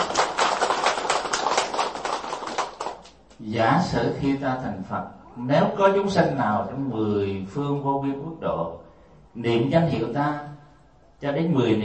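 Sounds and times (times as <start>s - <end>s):
audience applause: 0.0s - 3.2s
speech: 3.4s - 10.5s, 11.2s - 11.8s.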